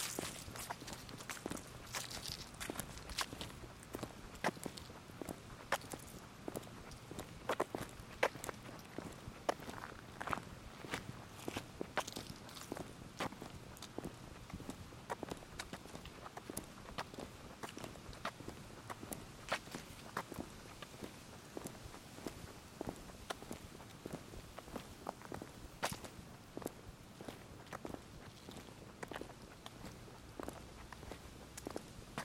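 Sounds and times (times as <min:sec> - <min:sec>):
footsteps crunching in Wolf's Prairie Park: 0:00.0 - 0:32.2.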